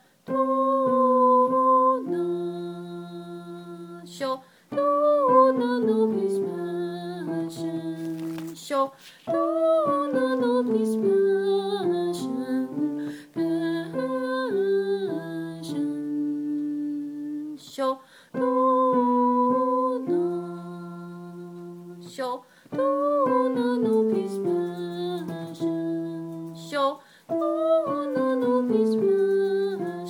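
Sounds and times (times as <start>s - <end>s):
soprano voices singing: 0.3s - 30.0s.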